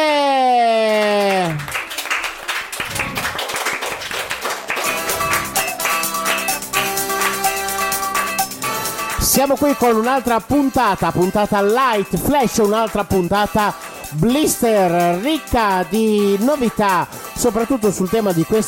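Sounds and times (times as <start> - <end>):
big round of applause on Radio Sei Forte: 0.6 - 8.5
speech: 9.4 - 18.6.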